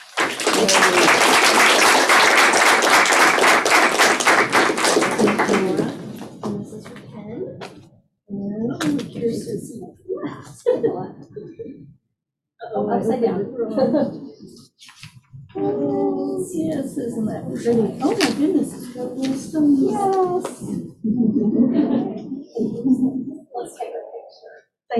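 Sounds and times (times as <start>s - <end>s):
people talking: 0.0s - 1.8s, 4.8s - 11.9s, 12.6s - 24.9s
crowd applause: 0.0s - 6.2s.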